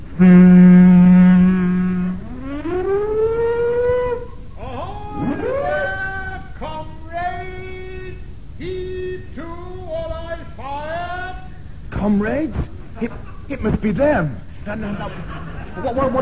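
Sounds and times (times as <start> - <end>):
speech: 0.2 - 0.5, 13.9 - 16.2
ship's siren blaring: 0.7 - 6.3
laughter: 13.0 - 13.6, 14.6 - 16.2.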